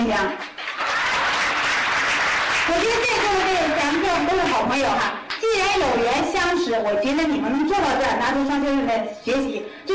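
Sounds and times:
speech: 0.0s - 0.5s, 4.2s - 9.9s
audience applause: 0.5s - 3.5s.

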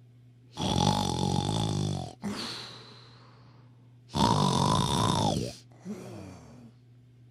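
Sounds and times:
leopard snoring loudly: 0.6s - 2.3s, 4.1s - 5.6s.

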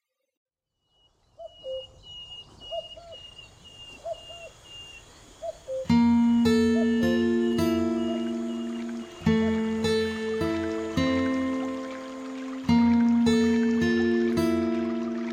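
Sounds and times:
birds cooing: 1.4s - 15.3s
sustained music: 5.9s - 15.3s.

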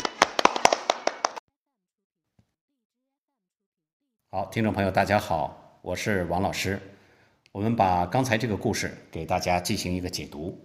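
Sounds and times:
short burst of applause: 0.0s - 1.4s
speech: 4.3s - 10.6s.

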